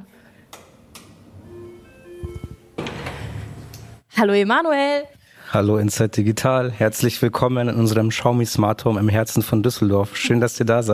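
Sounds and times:
doorbell ringing: 0:01.3 - 0:02.8
speech: 0:04.2 - 0:10.9.

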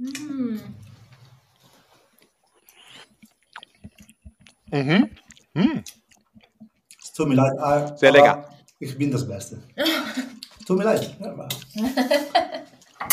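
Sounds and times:
person chewing and tasting a dish with a crust: 0:00.1 - 0:07.2, 0:10.3 - 0:10.8
speech: 0:04.7 - 0:05.9, 0:07.2 - 0:09.9, 0:10.7 - 0:12.7
person murmuring: 0:04.8 - 0:05.9.

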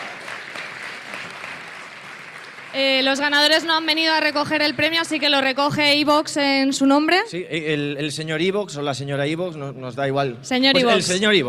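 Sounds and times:
audience applause: 0:00.0 - 0:05.2
speech: 0:02.8 - 0:11.4.

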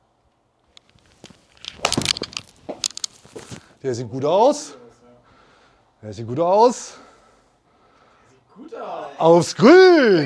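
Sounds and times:
crumpled paper ball being tossed: 0:00.8 - 0:03.7
speech: 0:03.8 - 0:04.8, 0:06.0 - 0:07.0, 0:09.2 - 0:10.2.

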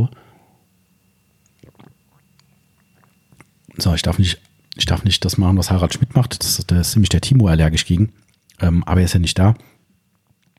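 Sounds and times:
person with a dry throat sipping a drink: 0:01.4 - 0:03.8, 0:08.2 - 0:08.6
swallowing: 0:01.4 - 0:03.8, 0:08.1 - 0:08.6
speech: 0:03.8 - 0:09.8.

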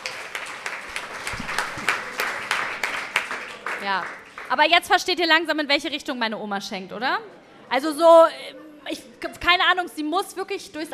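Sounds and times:
applause: 0:00.0 - 0:04.8
speech: 0:03.8 - 0:10.9.

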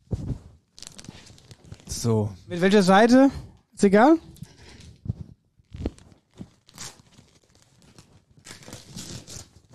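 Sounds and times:
black-and-white gift paper crinkling and tearing: 0:00.8 - 0:02.0, 0:05.6 - 0:09.7
speech: 0:01.9 - 0:04.3.

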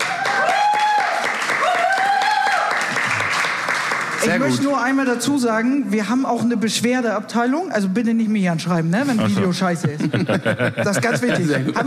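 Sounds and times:
whooping cheers: 0:00.0 - 0:02.9
audience applause: 0:00.0 - 0:04.7
speech: 0:04.3 - 0:11.8
laughter: 0:09.0 - 0:11.8.

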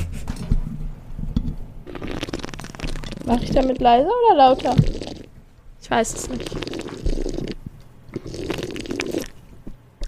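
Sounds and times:
slurping a drink: 0:01.9 - 0:03.8, 0:04.5 - 0:05.3, 0:06.1 - 0:10.0
speech: 0:03.3 - 0:05.0, 0:05.9 - 0:07.2.

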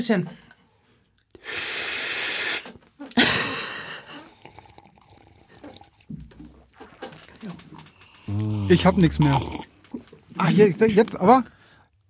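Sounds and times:
speech: 0:00.0 - 0:00.5, 0:01.4 - 0:01.6, 0:08.4 - 0:09.7, 0:10.4 - 0:11.5
person slurping: 0:01.3 - 0:03.2, 0:03.8 - 0:06.1, 0:07.9 - 0:10.2.

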